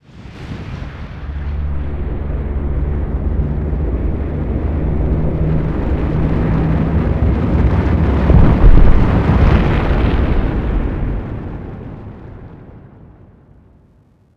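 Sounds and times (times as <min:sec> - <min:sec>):
building collapsing: 0:01.1 - 0:10.8.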